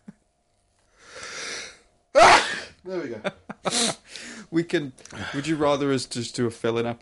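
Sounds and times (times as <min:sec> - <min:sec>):
stifled sneeze: 0:02.2 - 0:02.8
speech: 0:02.2 - 0:03.8, 0:04.5 - 0:07.0.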